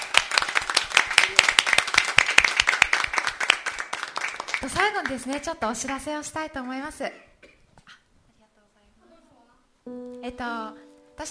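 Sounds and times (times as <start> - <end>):
audience applause: 0.0 - 5.4
speech: 4.6 - 7.3, 9.9 - 11.3.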